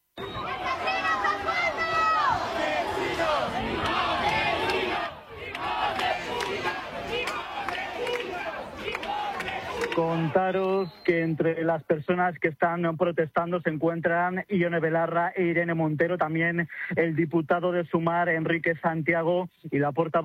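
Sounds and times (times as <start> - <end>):
protest crowd shouting insults: 0.2 - 10.5
speech: 10.3 - 20.2.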